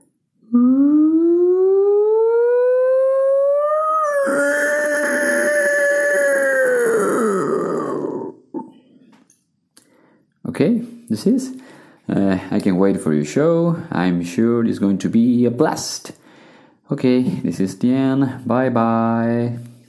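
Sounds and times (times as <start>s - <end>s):
person screaming: 0.6s - 8.4s
speech: 11.2s - 16.2s, 16.9s - 19.7s.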